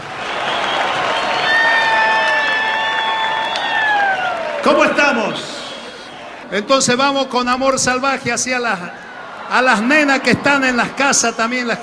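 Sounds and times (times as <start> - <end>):
audience applause for children: 0.0 - 11.8
speech: 4.7 - 5.5, 6.5 - 11.8.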